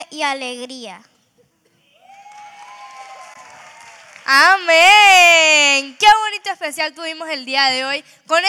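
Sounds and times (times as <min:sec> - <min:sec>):
speech: 0:00.1 - 0:01.1, 0:04.3 - 0:08.4
audience applause: 0:02.0 - 0:05.9.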